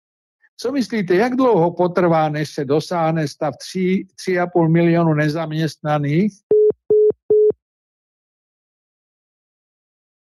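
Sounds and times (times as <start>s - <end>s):
speech: 0.6s - 6.5s
telephone busy signal after a call cut off: 6.5s - 7.6s.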